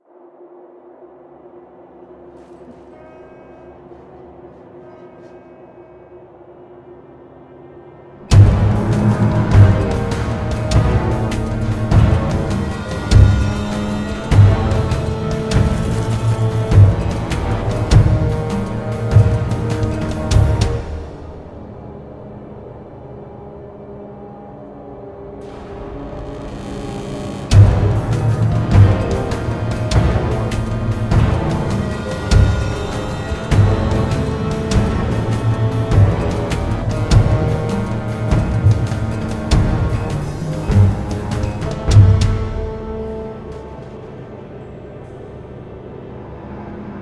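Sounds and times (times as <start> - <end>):
combat music: 7.0 - 24.1, 25.3 - 47.0.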